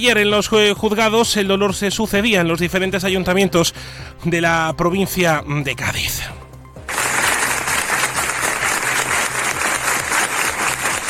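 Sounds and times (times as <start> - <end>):
speech: 0.0 - 6.4
large crowd applauding: 6.9 - 11.0.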